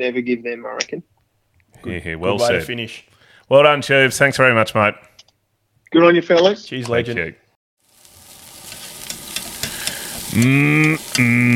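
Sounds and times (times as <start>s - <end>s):
speech: 0.0s - 1.1s, 1.7s - 5.1s, 5.9s - 7.4s, 10.4s - 11.5s
sausages sizzling on a barbecue: 7.8s - 11.5s.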